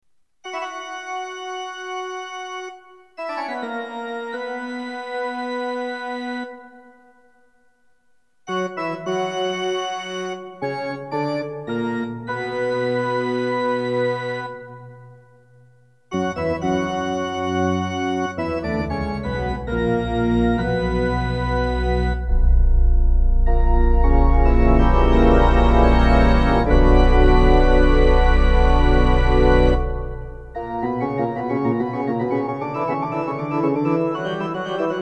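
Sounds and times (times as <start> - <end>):
organ music on an LX-500: 0.4 - 7.1, 8.5 - 15.2, 16.1 - 35.0.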